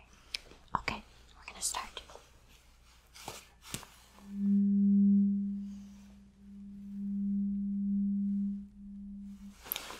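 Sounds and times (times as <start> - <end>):
struck tuning fork hum: 4.2 - 9.8.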